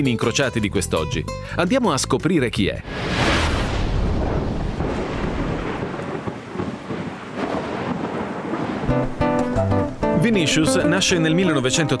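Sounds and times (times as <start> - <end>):
speech: 0.0 - 3.5, 10.3 - 11.9
loud thunder crack and deep rumble in a strong thunderstorm in Rio de Janeiro: 2.9 - 9.2.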